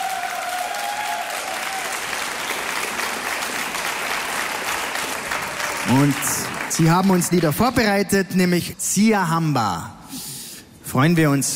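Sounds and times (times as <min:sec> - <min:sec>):
enthusiastic applause from hall audience: 0:00.0 - 0:07.6
speech: 0:05.9 - 0:10.0, 0:10.9 - 0:11.5.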